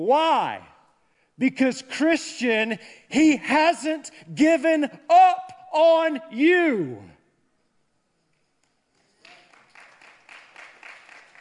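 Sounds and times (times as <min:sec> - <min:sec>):
speech: 0:00.0 - 0:00.7, 0:01.4 - 0:07.1
a few scattered audience hand claps: 0:09.2 - 0:11.4.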